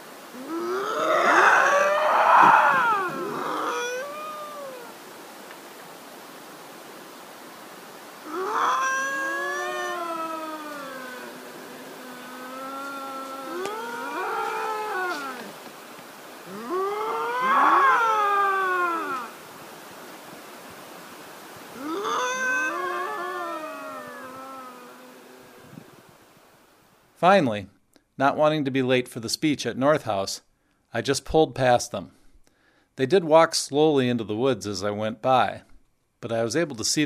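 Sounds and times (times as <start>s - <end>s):
two lynx yowling in the woods: 0.3s - 5.1s, 8.2s - 15.6s, 16.4s - 19.4s, 21.8s - 25.9s
speech: 27.2s - 32.2s, 33.0s - 37.0s.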